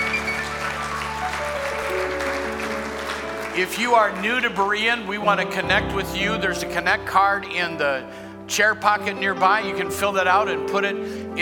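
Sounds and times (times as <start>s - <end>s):
audience clapping hands: 0.0s - 5.1s
speech: 3.6s - 11.4s.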